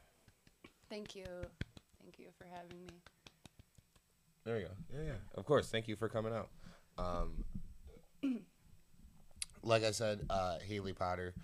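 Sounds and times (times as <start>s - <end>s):
speech: 0.9s - 3.2s, 4.4s - 7.4s, 9.6s - 11.4s
throat clearing with a bubble in the throat: 8.2s - 8.5s.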